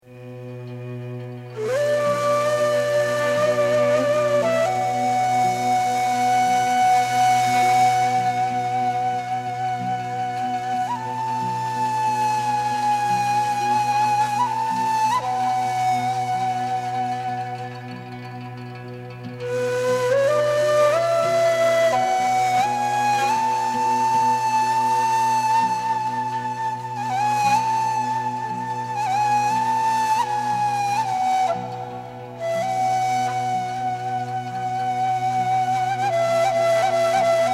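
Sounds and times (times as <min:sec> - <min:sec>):
ney flute taksim improvisation: 0:00.2 - 0:37.5.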